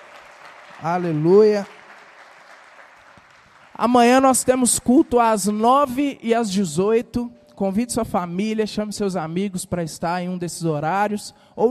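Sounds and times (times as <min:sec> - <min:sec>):
audience applause: 0:00.0 - 0:05.0
speech: 0:00.8 - 0:01.8, 0:03.8 - 0:11.6.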